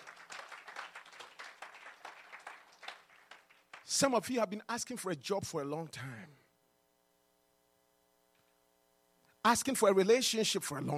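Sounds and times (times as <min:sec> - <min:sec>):
audience clapping: 0:00.0 - 0:04.2
speech: 0:03.9 - 0:06.4, 0:09.5 - 0:10.9.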